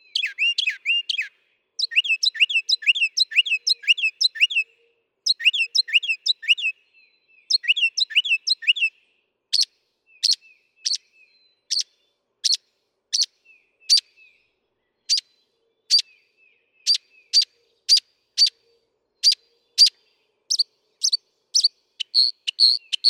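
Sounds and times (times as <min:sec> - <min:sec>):
Northern mockingbird singing: 0:00.0 - 0:08.9, 0:09.6 - 0:23.0.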